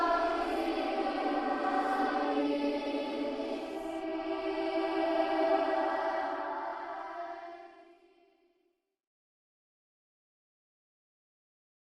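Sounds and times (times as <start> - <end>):
creepy possessed children singing horror sounds: 0.0 - 8.4.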